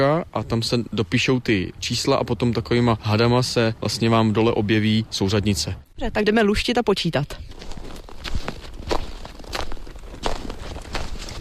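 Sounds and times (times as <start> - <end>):
speech: 0.0 - 8.4
footsteps crunching on snow: 7.4 - 11.4.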